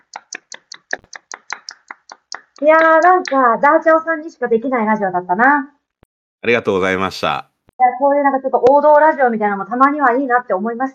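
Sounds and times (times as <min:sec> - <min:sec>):
hand claps for a guest on a radio show: 0:00.0 - 0:03.4
speech: 0:02.6 - 0:05.8, 0:06.4 - 0:10.9.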